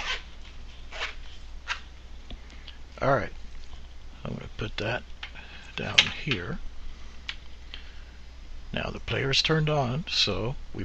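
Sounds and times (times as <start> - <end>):
zipper closing a speaker case: 0.0 - 0.3, 0.9 - 1.2
low steady hum: 0.0 - 10.8
speech: 3.0 - 3.4, 4.2 - 5.1, 5.8 - 6.7, 8.7 - 10.8.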